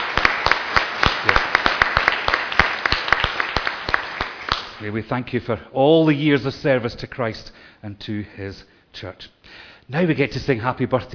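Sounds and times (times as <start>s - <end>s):
audience applause: 0.0s - 4.8s
speech: 4.8s - 11.1s.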